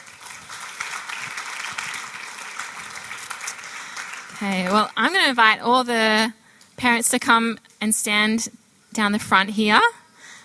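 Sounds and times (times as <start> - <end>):
audience clapping: 0.0 - 5.4
speech: 4.4 - 10.0.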